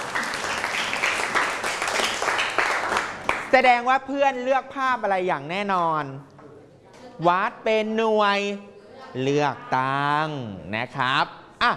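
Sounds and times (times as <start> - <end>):
classroom applause by students: 0.0 - 3.6
speech: 3.5 - 6.3, 7.2 - 11.7.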